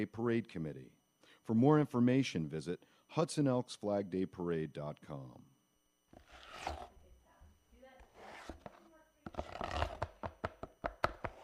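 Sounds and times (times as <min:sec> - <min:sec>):
speech: 0:00.0 - 0:05.5
spackle knife mixing spackle with rough scraping strokes: 0:06.2 - 0:07.0, 0:08.0 - 0:10.2.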